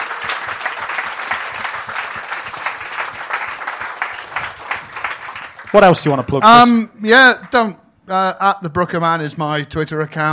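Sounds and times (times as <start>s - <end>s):
audience applause: 0.0s - 6.4s
speech: 5.7s - 10.3s.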